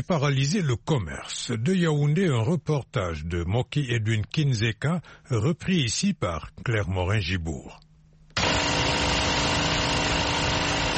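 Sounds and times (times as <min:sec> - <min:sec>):
speech: 0:00.0 - 0:07.8
generator powering a bakery flour mill in Obili, Yaoundé: 0:08.4 - 0:10.9.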